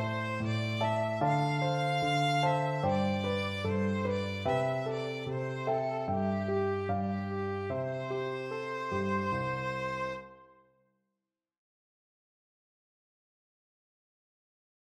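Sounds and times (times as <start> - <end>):
violin: 0.0 - 10.6.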